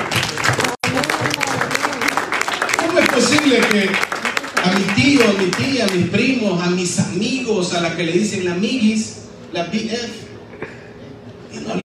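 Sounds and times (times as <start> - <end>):
crowd applauding: 0.0 - 6.1
speech: 3.2 - 10.7.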